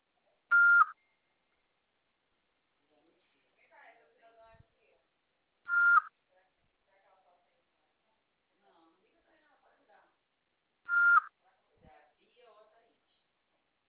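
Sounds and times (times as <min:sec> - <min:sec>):
phone voicemail system beep tones: 0:00.5 - 0:01.0, 0:05.7 - 0:06.1, 0:10.9 - 0:11.3.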